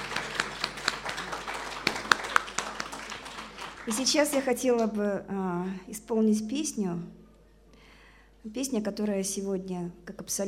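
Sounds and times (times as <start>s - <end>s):
scattered hand claps: 0.0s - 4.9s
speech: 3.9s - 7.2s, 8.4s - 10.4s.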